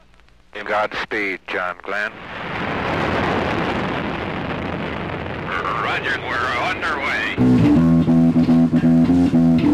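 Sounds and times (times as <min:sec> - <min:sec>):
speech: 0:00.6 - 0:03.2, 0:05.6 - 0:07.8
rocket engine roaring at liftoff: 0:02.1 - 0:09.6.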